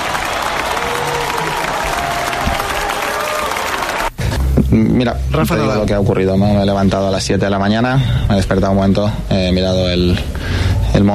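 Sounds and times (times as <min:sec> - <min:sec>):
faint cheering: 0:00.0 - 0:04.2
NBA basketball arena crowd applauding: 0:00.0 - 0:04.3
speech: 0:04.7 - 0:11.1.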